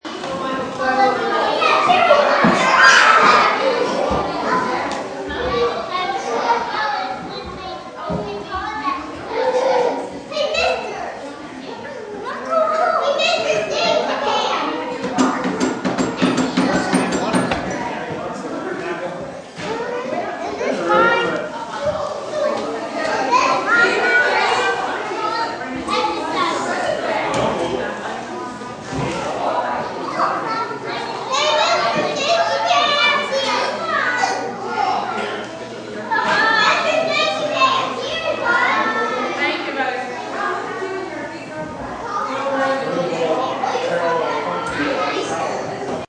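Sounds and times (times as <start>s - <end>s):
kids playing in an indoor gym: 0.0s - 46.0s.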